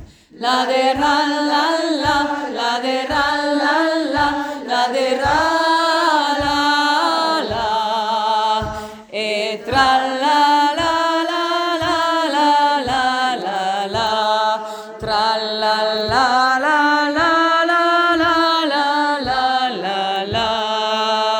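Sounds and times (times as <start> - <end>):
choir singing tralala: 0.0 - 21.3.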